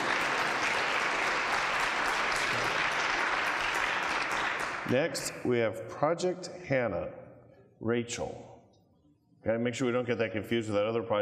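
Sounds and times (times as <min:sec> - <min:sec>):
audience clapping: 0:00.0 - 0:05.2
speech: 0:04.9 - 0:07.2, 0:07.8 - 0:08.5, 0:09.4 - 0:11.2.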